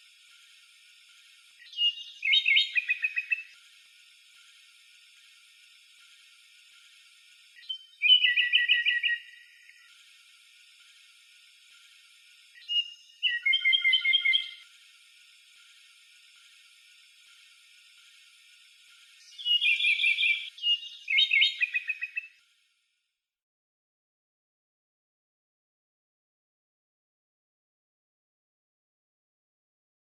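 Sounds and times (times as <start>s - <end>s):
European robin singing tinkling twittering phrases and whistles: 1.6s - 3.6s, 7.6s - 9.9s, 12.6s - 14.6s, 19.2s - 22.4s.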